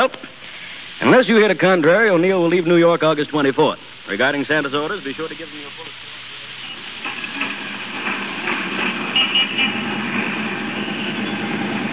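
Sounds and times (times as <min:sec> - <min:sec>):
speech: 0:00.0 - 0:00.3, 0:01.0 - 0:06.2
moving bus engine and road noise heard from top deck: 0:03.3 - 0:11.9.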